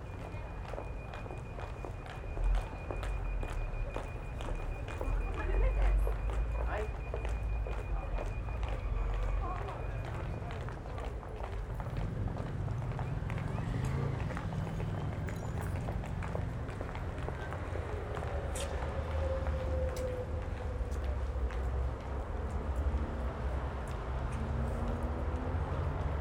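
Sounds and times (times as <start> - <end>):
pedestrians walking: 0.0 - 26.1.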